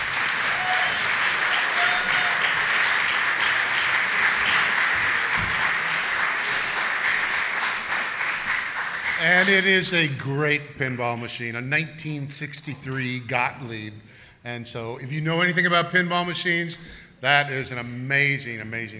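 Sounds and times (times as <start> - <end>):
audience applause: 0.0 - 9.6
speech: 9.2 - 18.9.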